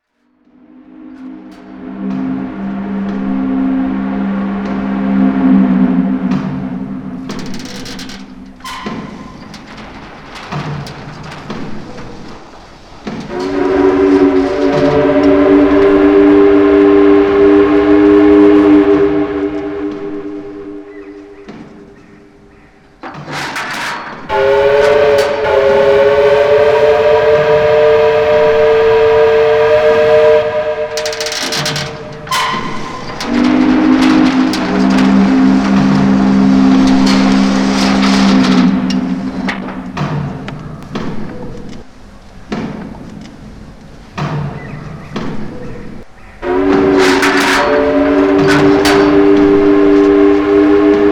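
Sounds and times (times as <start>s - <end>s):
metal ambience: 0.0s - 51.0s.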